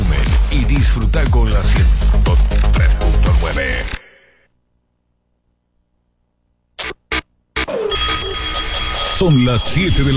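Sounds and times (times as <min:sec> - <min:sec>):
speech: 0:00.8 - 0:04.0, 0:09.2 - 0:10.1
alarm clock bell ringing: 0:07.9 - 0:10.1.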